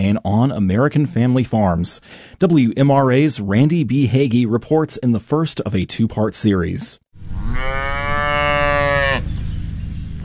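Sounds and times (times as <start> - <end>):
speech: 0.1 - 8.0
dairy cow mooing on a family farm on the outskirts of Luray: 7.3 - 9.3.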